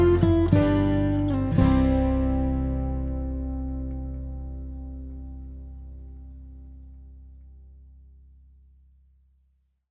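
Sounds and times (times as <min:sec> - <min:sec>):
instrumental alleluia music: 0:00.0 - 0:07.8.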